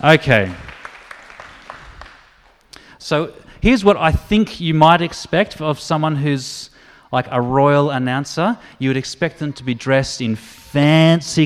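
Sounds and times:
speech: 0.0s - 0.6s, 3.0s - 11.4s
audience applause: 0.0s - 2.6s.

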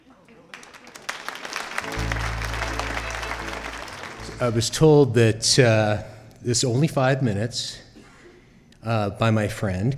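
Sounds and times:
audience clapping at a storytelling event: 0.4s - 4.9s
speech: 4.4s - 7.8s, 8.8s - 9.9s.

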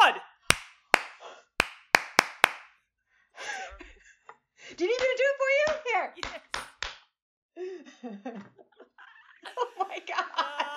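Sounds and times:
hand clap: 0.5s - 2.8s, 4.9s - 7.1s
laughter: 3.4s - 4.3s, 6.2s - 6.7s, 7.8s - 10.7s
speech: 8.0s - 8.7s.

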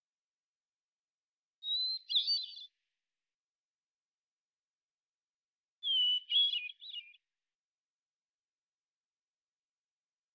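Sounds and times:
hermit thrush singing: 1.6s - 2.8s, 5.8s - 7.3s.

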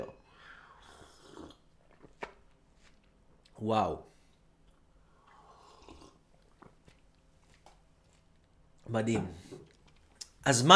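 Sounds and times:
person slurping masala chai tea: 0.6s - 1.7s, 5.2s - 6.2s
speech: 3.6s - 4.1s, 8.9s - 9.5s, 10.4s - 10.7s.

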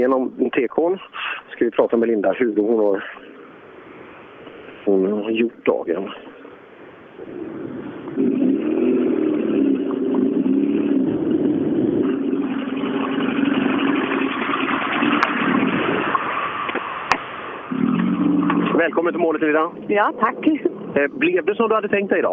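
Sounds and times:
speech: 0.0s - 3.3s, 4.8s - 6.3s, 7.2s - 8.6s, 18.8s - 22.3s
struggling car engine: 7.1s - 21.1s.

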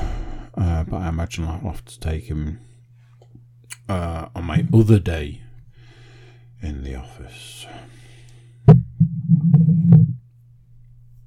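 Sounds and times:
speech: 0.6s - 2.7s, 3.9s - 5.4s, 6.6s - 8.0s
squeaky chair creaking: 9.0s - 10.2s.

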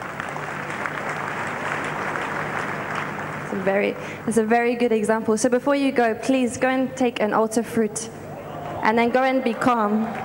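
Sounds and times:
audience clapping: 0.0s - 4.0s, 8.5s - 10.2s
speech: 3.5s - 8.2s, 8.8s - 10.2s.

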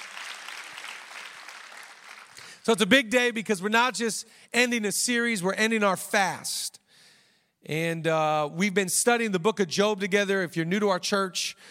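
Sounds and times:
audience clapping: 0.0s - 2.6s
speech: 2.6s - 6.8s, 7.6s - 11.7s.

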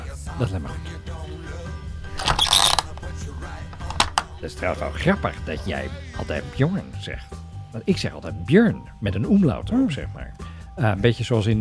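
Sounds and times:
speech: 0.4s - 1.1s, 4.4s - 11.6s
door being locked with metallic clicks and rattles: 2.1s - 4.6s.

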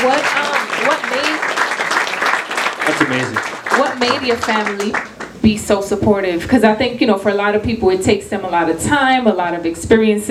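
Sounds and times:
applause: 0.0s - 5.4s
speech: 2.9s - 10.3s.

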